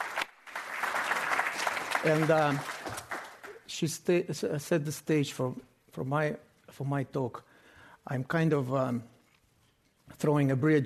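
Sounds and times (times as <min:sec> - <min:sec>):
audience clapping: 0:00.0 - 0:03.7
speech: 0:02.0 - 0:02.7, 0:03.8 - 0:09.1, 0:10.2 - 0:10.8.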